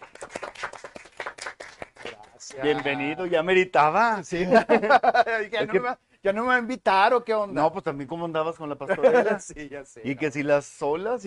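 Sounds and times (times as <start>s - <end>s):
hand clapping applause: 0.0s - 3.1s
speech: 2.5s - 11.2s
laughter: 4.4s - 5.5s, 8.9s - 9.5s.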